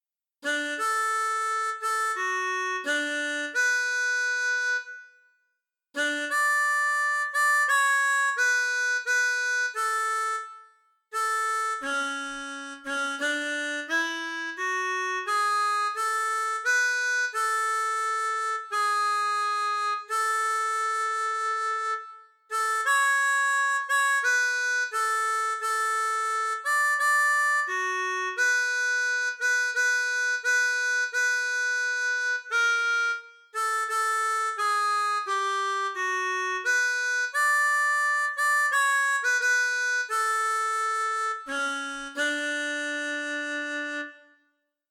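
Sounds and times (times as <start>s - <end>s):
harmonica playing national anthem: 0.4s - 5.2s, 6.0s - 44.5s.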